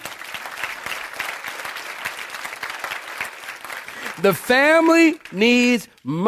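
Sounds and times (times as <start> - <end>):
people clapping hands: 0.0 - 6.2
speech: 4.2 - 6.2.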